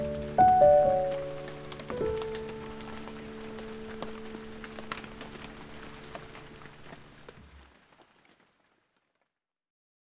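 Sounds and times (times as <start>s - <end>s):
moonlight piano music: 0.0s - 7.3s
rain: 0.0s - 9.0s.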